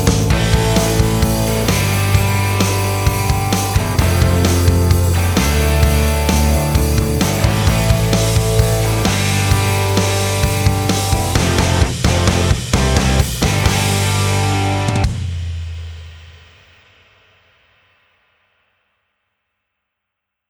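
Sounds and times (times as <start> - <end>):
band backing track without lead guitar: 0.0 - 15.3.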